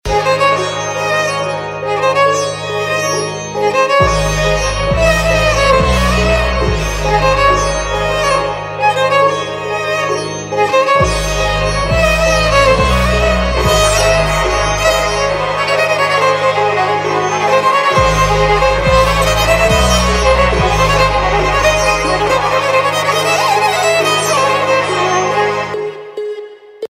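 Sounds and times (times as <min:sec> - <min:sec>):
Punjabi theme ringtone: 0:00.1 - 0:26.8.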